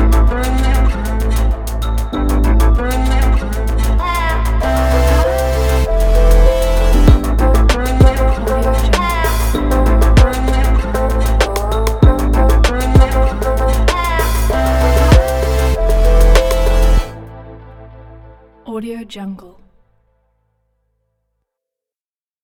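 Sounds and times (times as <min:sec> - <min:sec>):
modern hip hop trap beat for advertising: 0:00.0 - 0:17.2.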